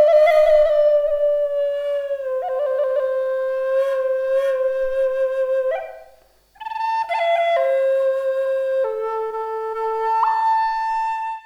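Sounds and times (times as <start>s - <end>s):
kauri love flute playing in A minor: 0.0s - 11.4s.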